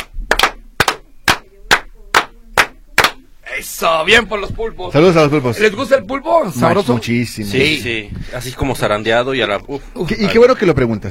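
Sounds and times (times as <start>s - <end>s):
sharp loud claps: 0.0s - 3.2s
speech: 3.6s - 11.0s.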